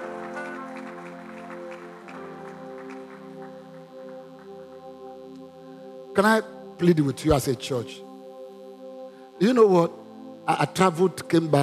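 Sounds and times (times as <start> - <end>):
crowd clapping: 0.0 - 5.0
sustained organ-like music: 0.0 - 11.6
speech: 6.2 - 8.0, 9.4 - 11.6.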